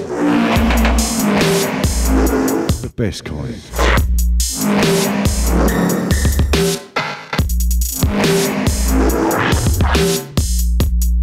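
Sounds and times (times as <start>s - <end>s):
glitchy DJ spin-back effect in a nu-breaks mix: 0.0s - 2.7s
nu-breaks music with steady beat: 0.4s - 2.8s, 4.0s - 11.2s
speech: 3.0s - 6.0s.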